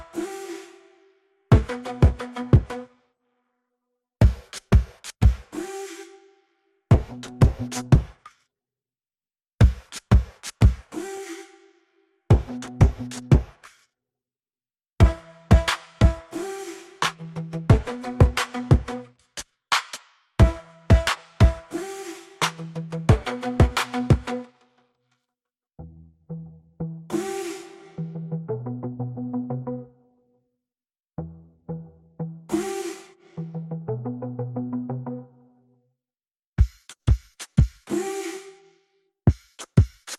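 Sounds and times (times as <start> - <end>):
drums: 1.6 - 2.8, 4.2 - 5.6, 6.9 - 8.2, 9.6 - 11.0, 12.3 - 13.7, 15.0 - 16.4, 17.0 - 21.8, 22.4 - 24.4, 36.6 - 37.9, 39.3 - 40.1.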